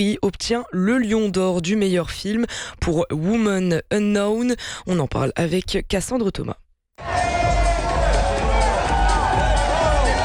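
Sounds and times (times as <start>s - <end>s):
speech: 0.0s - 7.1s
crowd applause on the red carpet: 7.0s - 10.2s.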